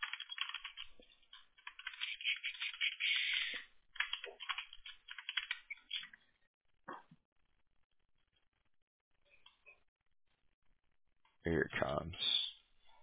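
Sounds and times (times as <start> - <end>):
text message being typed on a phone or keyboard: 0.0 - 2.9, 4.0 - 6.1
speech: 11.5 - 12.3.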